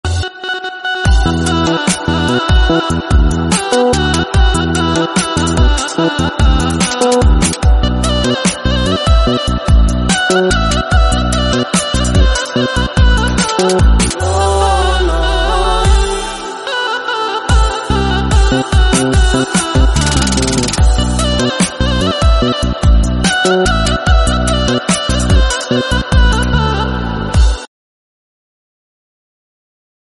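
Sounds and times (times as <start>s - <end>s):
Turkish instrumental music: 0.0s - 27.7s.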